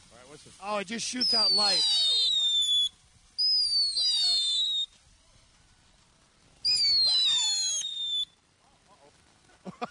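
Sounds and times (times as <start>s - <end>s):
killer bee firework crackling: 0.0s - 9.8s
speech: 0.2s - 2.2s
killer bee firework whistling shrieks: 0.4s - 5.9s, 6.5s - 8.5s.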